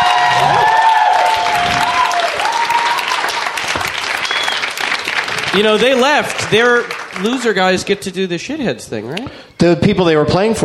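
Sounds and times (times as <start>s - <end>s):
whoops and cheers: 0.0s - 4.8s
audience applause: 0.0s - 7.9s
speech: 5.6s - 10.6s.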